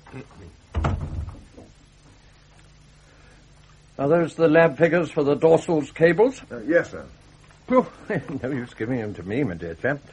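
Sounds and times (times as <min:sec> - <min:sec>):
speech: 0:00.1 - 0:01.8, 0:04.0 - 0:10.1
door closing: 0:00.7 - 0:01.7.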